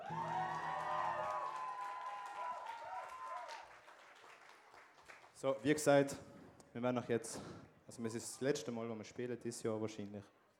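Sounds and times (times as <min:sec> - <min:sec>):
audience cheers and whoops: 0:00.0 - 0:03.9
audience applause: 0:00.0 - 0:05.4
speech: 0:05.4 - 0:10.4.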